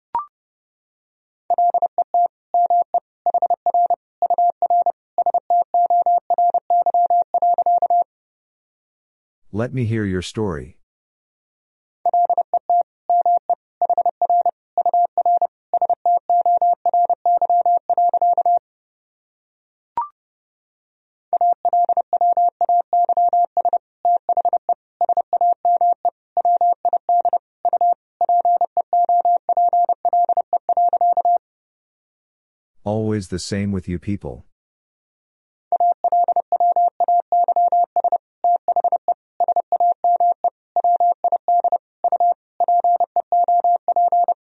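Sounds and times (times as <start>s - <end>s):
Morse code at 30 words per minute: 1.5s - 8.0s, 12.1s - 18.6s, 21.4s - 31.4s, 35.7s - 44.4s
speech: 9.5s - 10.8s, 33.3s - 34.5s.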